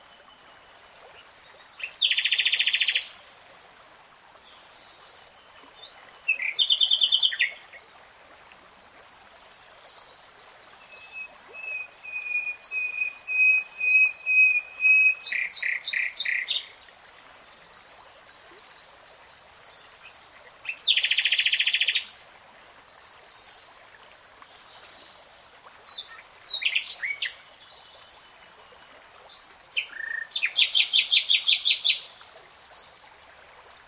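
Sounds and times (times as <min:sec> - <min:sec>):
background hiss: 0:00.0 - 0:33.8
nightingale song: 0:01.1 - 0:03.2, 0:05.5 - 0:07.8, 0:09.6 - 0:17.0, 0:18.6 - 0:22.2, 0:25.8 - 0:28.1, 0:29.3 - 0:33.8.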